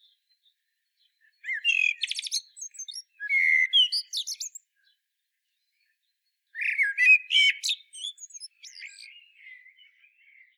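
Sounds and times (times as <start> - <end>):
Common blackbird singing fluting warbled phrases: 1.4 - 4.6, 6.6 - 10.5.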